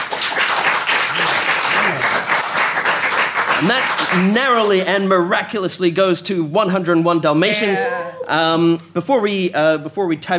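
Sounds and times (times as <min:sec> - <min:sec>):
crowd applause: 0:00.0 - 0:04.8
speech: 0:03.6 - 0:10.3.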